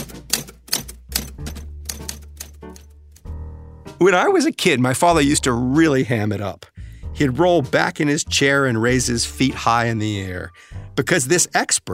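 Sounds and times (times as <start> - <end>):
typewriter keys clacking: 0.0 - 3.3
speech: 4.0 - 11.9.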